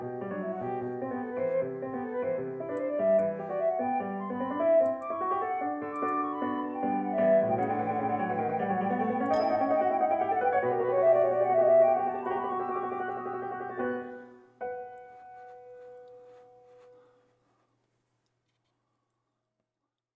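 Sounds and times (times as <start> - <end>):
flute fugue: 0.0 - 14.5.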